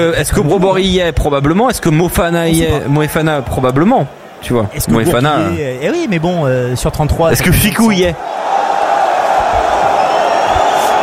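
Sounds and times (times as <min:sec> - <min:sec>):
speech: 0:00.0 - 0:08.3
rugby crowd grumbling after a long kick into touch: 0:02.6 - 0:05.8, 0:07.4 - 0:11.0.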